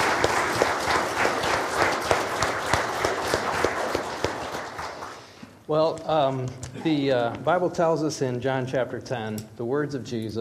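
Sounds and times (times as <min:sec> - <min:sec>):
audience applause: 0:00.0 - 0:05.4
speech: 0:05.7 - 0:10.3.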